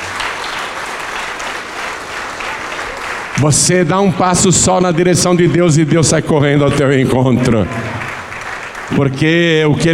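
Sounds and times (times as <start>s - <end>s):
audience applauding: 0.0s - 4.7s, 7.1s - 9.9s
speech: 3.4s - 8.0s, 8.9s - 9.9s.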